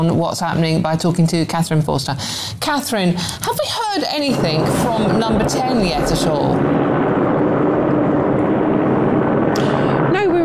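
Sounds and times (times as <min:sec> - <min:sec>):
speech: 0:00.0 - 0:06.8
helicopter hovering overhead: 0:02.6 - 0:10.4.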